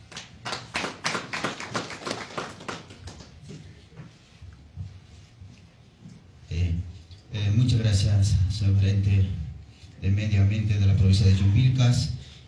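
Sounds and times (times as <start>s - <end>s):
applause at press conference: 0.1s - 3.3s
speech: 7.7s - 9.4s, 10.0s - 12.2s.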